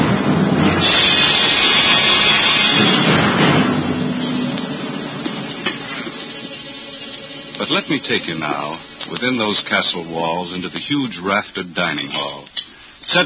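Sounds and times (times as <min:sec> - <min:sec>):
raging storm wind roaring: 0:00.0 - 0:09.7
speech: 0:07.7 - 0:13.2.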